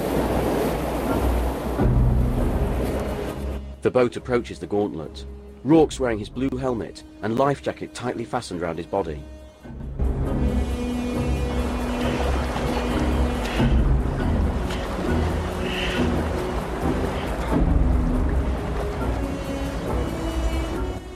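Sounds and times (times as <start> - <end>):
river water rushing past rocks at rapids: 0.0 - 3.6, 10.8 - 21.1
speech: 3.8 - 9.4.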